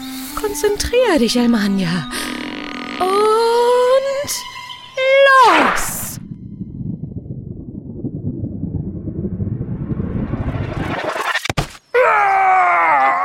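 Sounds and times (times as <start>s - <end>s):
speech: 0.4s - 2.4s, 3.0s - 3.4s
rising whooshing rush: 5.3s - 11.6s
person groaning in pain: 12.0s - 13.2s.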